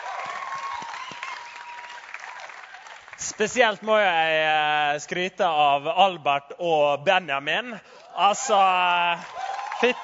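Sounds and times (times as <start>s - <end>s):
audience applause: 0.0s - 3.5s, 8.5s - 10.0s
speech: 3.2s - 10.0s.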